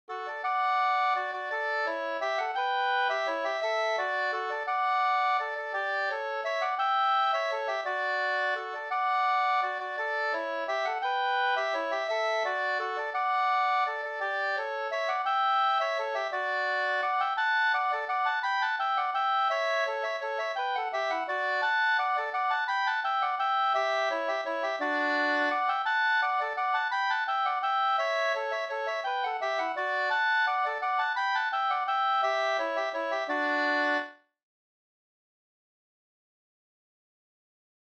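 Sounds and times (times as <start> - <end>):
Norwegian waltz music: 0.1 - 34.2.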